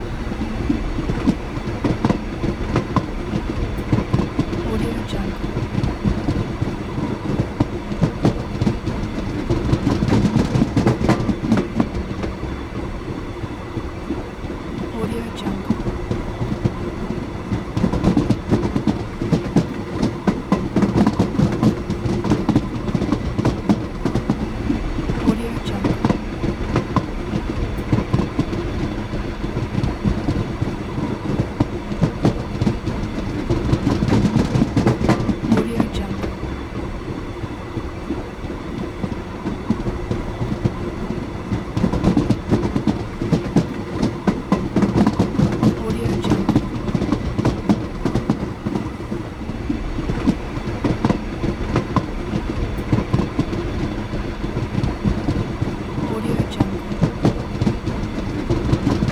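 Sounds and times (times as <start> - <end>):
train background noise: 0.0 - 59.1.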